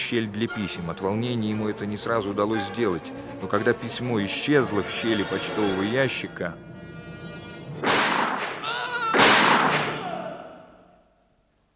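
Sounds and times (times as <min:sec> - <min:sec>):
speech: 0:00.1 - 0:06.7
wavering tonal whine: 0:00.5 - 0:07.8
gunshots: 0:07.8 - 0:10.2.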